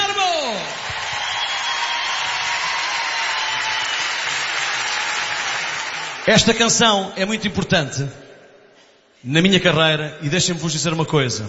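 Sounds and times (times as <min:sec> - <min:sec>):
concert audience applause: 0:00.6 - 0:06.6
speech: 0:06.3 - 0:08.2, 0:09.2 - 0:11.4.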